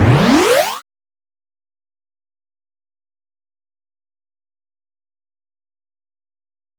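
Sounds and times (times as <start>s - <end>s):
arcade alarm: 0.0s - 0.8s.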